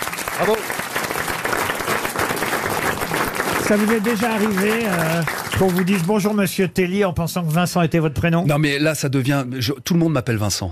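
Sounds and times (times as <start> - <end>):
studio audience applause: 0.0 - 6.5
speech: 0.4 - 0.9, 3.7 - 10.6.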